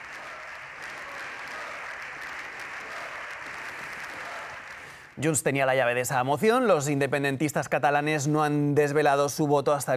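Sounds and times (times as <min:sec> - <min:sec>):
applause in parliament chamber: 0:00.0 - 0:06.1
speech: 0:05.2 - 0:09.9.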